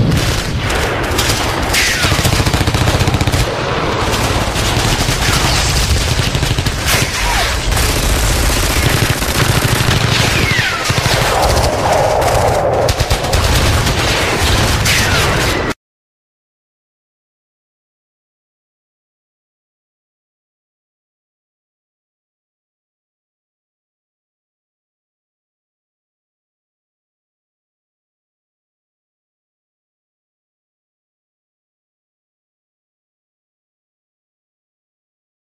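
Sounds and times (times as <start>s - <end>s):
war sound effects: 0.0s - 15.8s.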